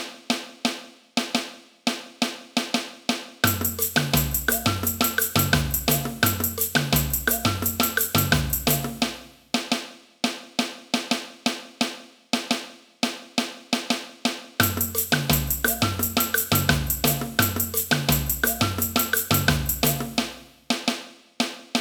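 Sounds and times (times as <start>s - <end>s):
caixa snare drum: 0.0s - 21.8s
samba music: 3.4s - 9.7s, 14.6s - 20.5s.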